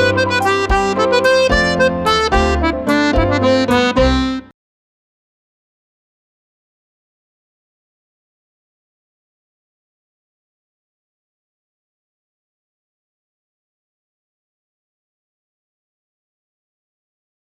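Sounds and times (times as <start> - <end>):
treble jig tune: 0.0 - 4.5.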